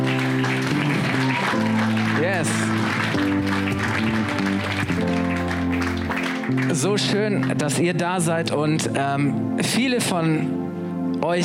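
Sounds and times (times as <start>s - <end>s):
crowd clapping: 0.0s - 7.9s
speech: 6.8s - 10.6s, 11.2s - 11.4s.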